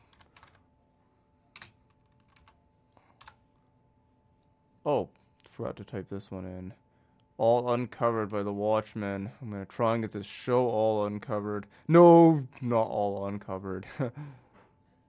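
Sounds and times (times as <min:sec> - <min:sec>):
typing on a computer keyboard: 0:00.0 - 0:00.7, 0:01.5 - 0:03.5
speech: 0:04.9 - 0:06.8, 0:07.4 - 0:14.4.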